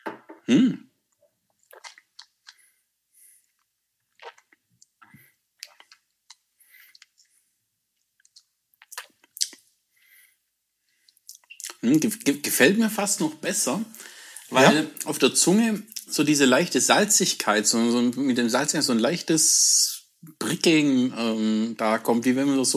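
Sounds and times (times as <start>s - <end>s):
speech: 0.5s - 0.9s, 12.0s - 22.7s
sticky mouth clicks: 1.6s - 2.6s, 4.1s - 7.3s, 8.2s - 9.6s, 11.3s - 11.8s
soft wet chewing of peanut butter: 1.6s - 2.7s, 3.4s - 7.4s, 8.0s - 9.6s, 11.1s - 11.8s.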